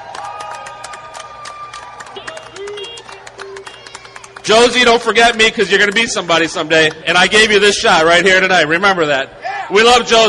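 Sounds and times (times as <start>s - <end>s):
audience applause: 0.0s - 6.5s
speech: 4.5s - 10.2s.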